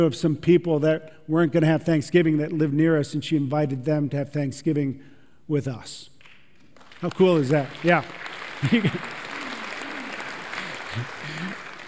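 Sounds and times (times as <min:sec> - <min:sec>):
speech: 0:00.0 - 0:06.1, 0:07.0 - 0:09.2, 0:11.0 - 0:11.6
audience clapping: 0:06.2 - 0:11.8
laughter: 0:08.6 - 0:11.8.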